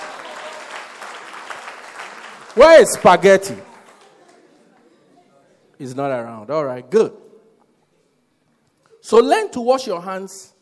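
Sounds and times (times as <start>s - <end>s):
audience applause: 0.0s - 4.5s
speech: 2.6s - 3.7s, 5.8s - 7.2s, 9.0s - 10.5s.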